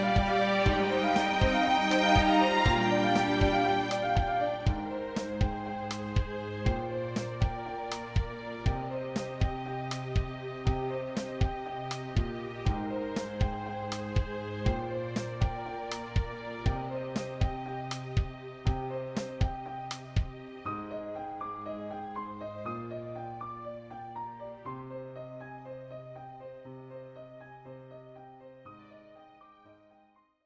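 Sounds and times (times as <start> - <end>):
percussion: 0.0 - 20.4
strings in C minor: 0.0 - 25.2
piano in C minor: 0.0 - 30.4.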